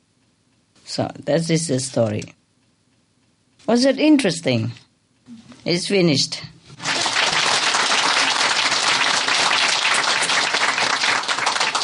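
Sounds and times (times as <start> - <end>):
speech: 1.0 - 2.4, 3.7 - 6.5
audience applause: 6.8 - 11.8.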